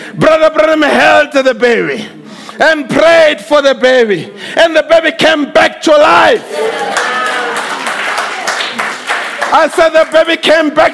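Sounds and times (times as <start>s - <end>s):
speech: 0.1s - 7.2s, 9.5s - 10.9s
audience clapping hands: 6.6s - 10.4s.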